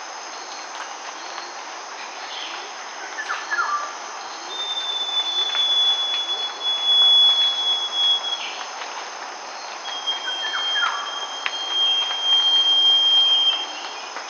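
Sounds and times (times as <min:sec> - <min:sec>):
northern scrub robin: 0:02.3 - 0:08.6, 0:09.6 - 0:14.2.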